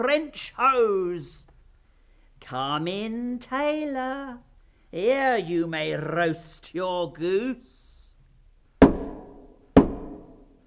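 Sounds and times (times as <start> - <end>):
speech: 0.0 - 1.5, 2.4 - 7.9
heavy knocks on a door: 8.8 - 10.4.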